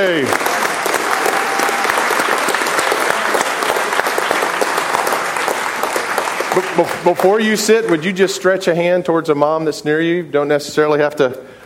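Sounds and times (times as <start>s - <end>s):
speech: 0.0s - 0.5s, 6.6s - 11.6s
standing ovation for mothers at a church service: 0.0s - 8.1s.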